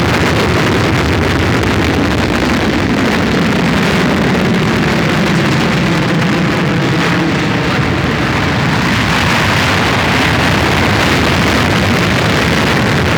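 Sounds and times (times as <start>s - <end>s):
spaceship pursuit: 0.0s - 13.1s.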